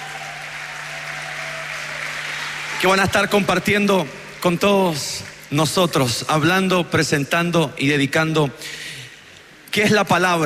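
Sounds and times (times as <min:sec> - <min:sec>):
crowd applauding at a church gathering: 0:00.0 - 0:05.8
speech: 0:02.8 - 0:08.8, 0:09.8 - 0:10.4.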